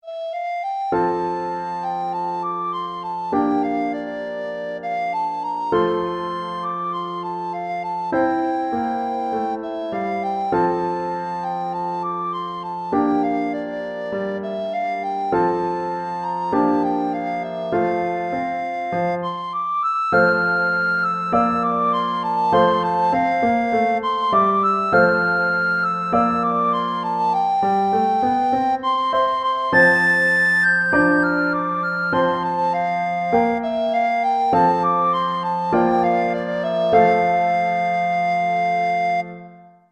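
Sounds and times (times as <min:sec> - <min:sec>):
recorder playing a folk tune: 0:00.0 - 0:39.9.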